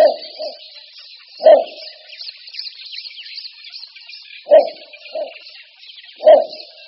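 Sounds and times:
little bittern barking calls: 0.0s - 0.7s, 1.4s - 2.0s, 4.4s - 5.4s, 6.2s - 6.8s.

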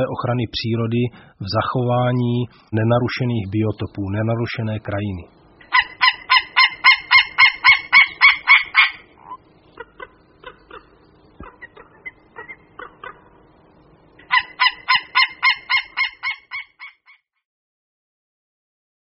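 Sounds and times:
speech: 0.0s - 5.4s
White-tailed eagle yelping call: 5.6s - 13.4s, 14.2s - 17.2s.

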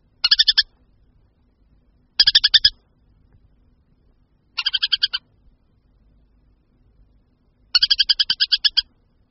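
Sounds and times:
Montagu's harrier chattering: 0.2s - 0.7s, 2.2s - 2.8s, 4.6s - 5.3s, 7.7s - 8.9s.

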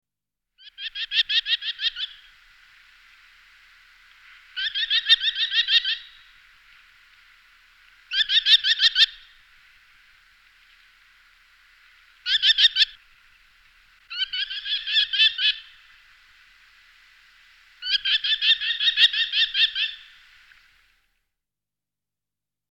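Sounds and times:
merlin chattering: 0.6s - 2.3s, 4.2s - 6.3s, 8.1s - 9.4s, 12.2s - 13.0s, 14.1s - 16.0s, 17.8s - 20.2s.

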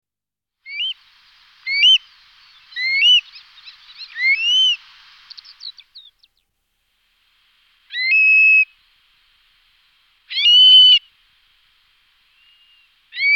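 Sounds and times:
Eurasian stone-curlew Burhinus oedicnemus giving shrill wailing whistled calls: 0.7s - 1.0s, 1.6s - 6.2s, 7.9s - 8.7s, 10.3s - 11.1s, 12.3s - 13.3s.

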